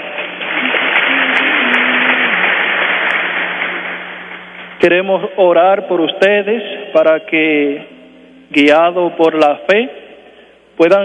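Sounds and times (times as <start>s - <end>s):
crowd applauding: 0.0s - 4.6s
speech: 4.8s - 7.9s, 8.5s - 10.0s, 10.8s - 11.0s.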